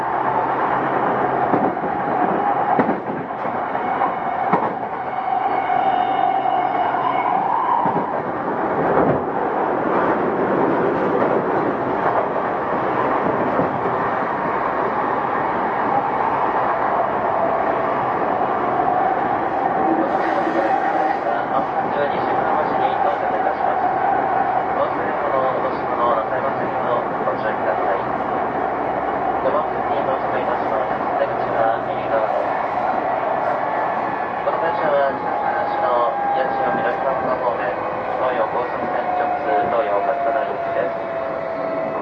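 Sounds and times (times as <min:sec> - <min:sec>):
Tokyo Metro 05 series wide-door train running: 0:00.0 - 0:42.0
faint voices: 0:16.9 - 0:42.0.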